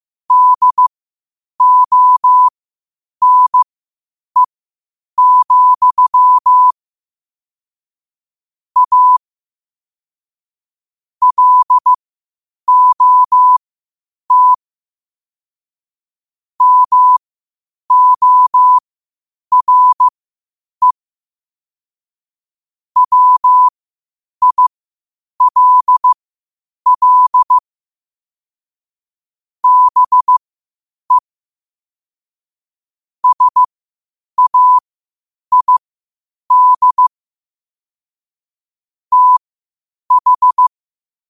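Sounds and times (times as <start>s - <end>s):
morse code at 5 wpm: 0.3s - 0.9s, 1.6s - 2.5s, 3.2s - 3.6s, 5.2s - 6.8s, 8.8s - 9.2s, 11.2s - 12.0s, 12.7s - 13.6s, 14.3s - 14.6s, 16.6s - 17.2s, 17.9s - 18.8s, 19.5s - 20.1s, 23.0s - 23.7s, 24.4s - 24.7s, 25.4s - 26.2s, 26.9s - 27.6s, 29.6s - 30.4s, 33.2s - 33.7s, 34.4s - 34.8s, 35.5s - 35.8s, 36.5s - 37.1s, 39.1s - 39.4s, 40.1s - 40.7s.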